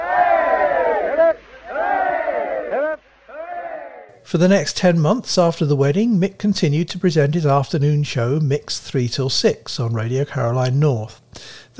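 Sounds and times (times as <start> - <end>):
crowd giving three cheers for the bride and groom: 0.0 - 4.1
speech: 4.3 - 11.7.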